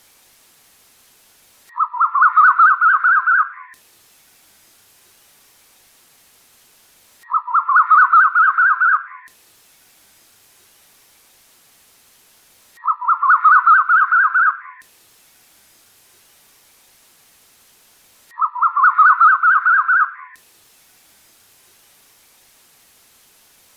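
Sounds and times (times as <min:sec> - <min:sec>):
bird chattering song: 0:01.7 - 0:03.8, 0:07.2 - 0:09.3, 0:12.8 - 0:14.8, 0:18.3 - 0:20.4.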